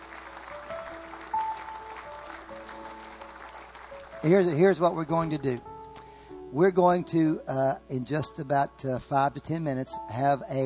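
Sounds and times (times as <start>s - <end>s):
audience clapping: 0.0s - 5.4s
speech: 4.2s - 5.7s, 6.5s - 10.6s.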